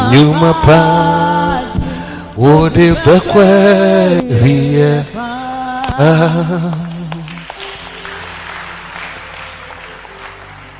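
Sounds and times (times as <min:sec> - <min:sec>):
speech: 0:00.1 - 0:01.1, 0:02.4 - 0:05.2, 0:05.9 - 0:06.9
audience clapping: 0:05.6 - 0:10.7.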